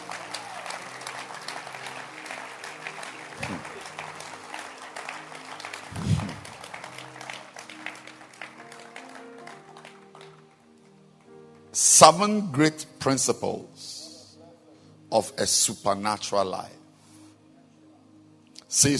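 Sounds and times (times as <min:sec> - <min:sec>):
audience clapping: 0:00.0 - 0:11.7
speech: 0:03.5 - 0:03.7, 0:12.0 - 0:13.7, 0:15.1 - 0:16.8, 0:18.8 - 0:18.9.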